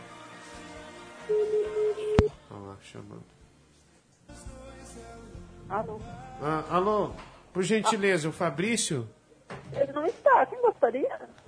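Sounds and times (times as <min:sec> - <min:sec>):
speech: 0:01.3 - 0:01.8, 0:02.8 - 0:03.4, 0:04.3 - 0:11.4
ringback tone on an outgoing telephone call: 0:01.3 - 0:02.3
voices over a phone line: 0:09.8 - 0:11.3.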